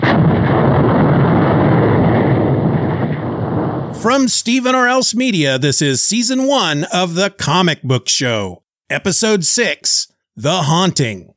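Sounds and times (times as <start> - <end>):
planet exploding sound effect: 0.0 - 4.7
speech: 4.0 - 11.3.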